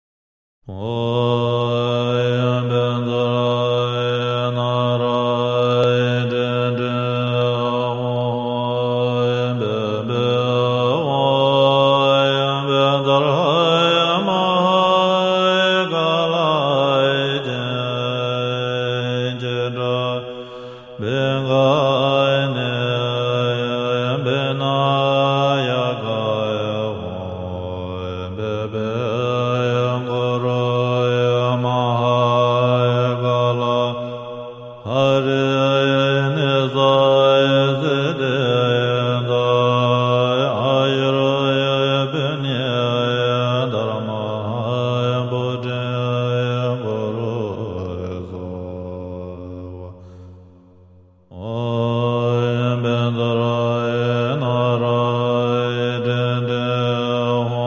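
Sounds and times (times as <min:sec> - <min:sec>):
Tibetan Buddhist meditation chant: 0:00.7 - 0:49.9, 0:51.3 - 0:57.6.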